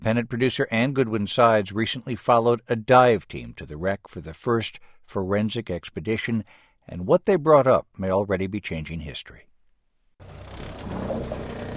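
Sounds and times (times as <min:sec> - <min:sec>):
speech: 0:00.0 - 0:09.5
dive boat engine motoring through sea swells off the Irish coast: 0:10.2 - 0:11.7.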